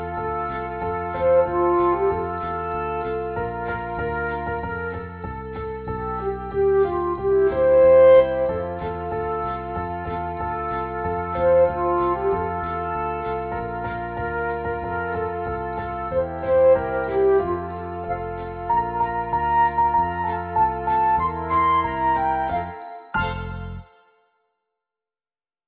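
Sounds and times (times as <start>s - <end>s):
karaoke backing track of a Christmas song: 0.0s - 23.8s.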